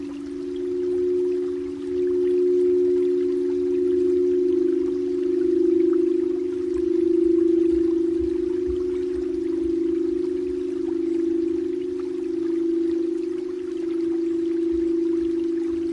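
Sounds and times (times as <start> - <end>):
crystal singing bowl ringing: 0.0 - 15.9
soft low knocks: 5.5 - 11.6.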